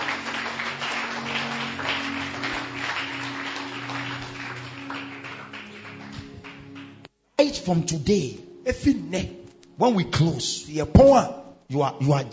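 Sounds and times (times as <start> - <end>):
audience clapping hands: 0.0 - 7.1
speech: 7.4 - 12.3.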